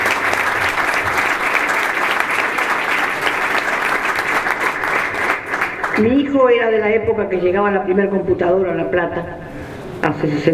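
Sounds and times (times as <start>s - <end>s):
audience applause: 0.0s - 6.0s
speech: 6.0s - 10.5s.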